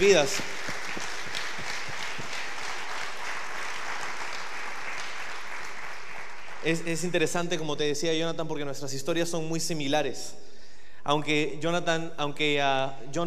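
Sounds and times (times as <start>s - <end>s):
speech: 0.0s - 0.6s, 6.6s - 10.5s, 11.1s - 13.2s
audience applause: 0.0s - 7.1s.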